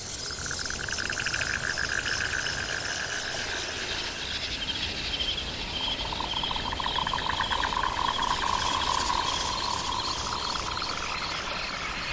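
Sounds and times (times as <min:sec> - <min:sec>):
wild forest ambience: 0:00.0 - 0:12.1.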